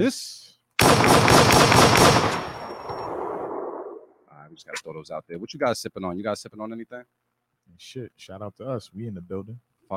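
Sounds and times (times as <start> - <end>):
speech: 0.0 - 1.8, 4.5 - 9.9
gunshot sound effects: 0.8 - 3.2.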